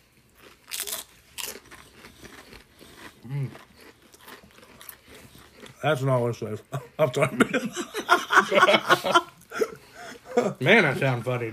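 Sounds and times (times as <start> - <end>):
chewing: 0.0 - 6.2
crunching bites of a cheesy food: 0.3 - 5.8
speech: 5.8 - 9.3, 10.4 - 11.5
laughter: 6.7 - 11.4.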